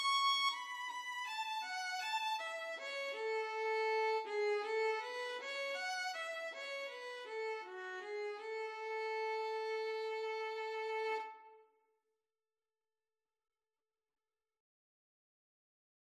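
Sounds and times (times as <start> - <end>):
violin playing a karaoke folk ballad: 0.0 - 11.6.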